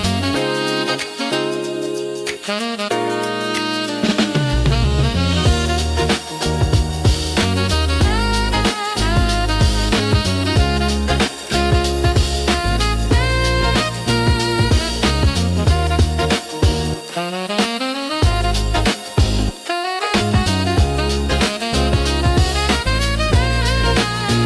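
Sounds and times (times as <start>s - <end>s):
uplifting lo-fi intro music with rhythmic saxophone: 0.0s - 24.4s.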